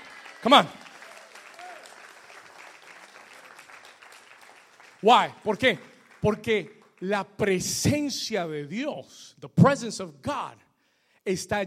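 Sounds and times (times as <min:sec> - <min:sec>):
audience applause: 0:00.0 - 0:07.1
speech: 0:00.4 - 0:00.8, 0:05.0 - 0:10.6, 0:11.2 - 0:11.6.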